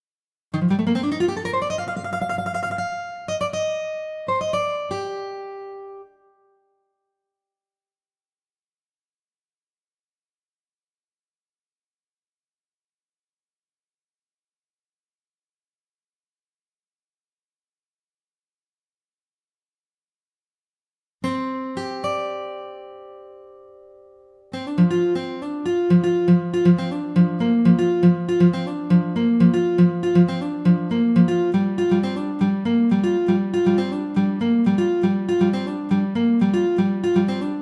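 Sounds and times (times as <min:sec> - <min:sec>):
acoustic music: 0:00.6 - 0:06.4, 0:21.2 - 0:37.5.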